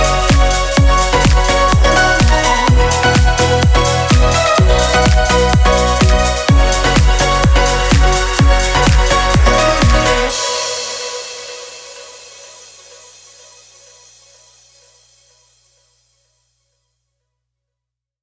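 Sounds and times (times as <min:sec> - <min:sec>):
instrumental music: 0:00.0 - 0:13.1.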